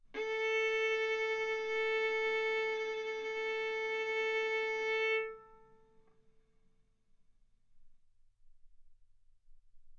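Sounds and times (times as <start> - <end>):
violin bowed arco notes: 0.0 - 6.1.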